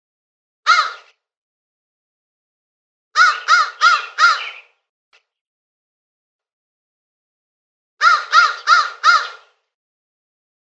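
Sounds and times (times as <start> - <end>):
crow cawing: 0.7 - 1.1, 3.2 - 4.6, 8.0 - 9.6.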